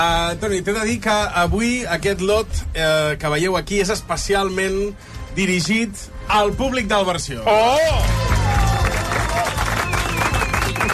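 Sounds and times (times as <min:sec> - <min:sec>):
speech: 0:00.0 - 0:08.4
audience applause: 0:08.0 - 0:10.9.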